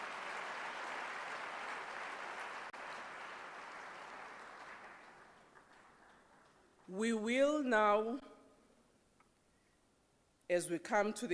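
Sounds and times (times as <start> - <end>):
crowd applauding: 0.0 - 6.8
speech: 6.9 - 8.2, 10.5 - 11.3.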